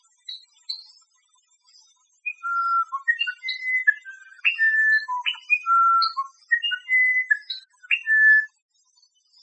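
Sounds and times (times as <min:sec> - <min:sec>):
wren calling: 0:02.3 - 0:08.5.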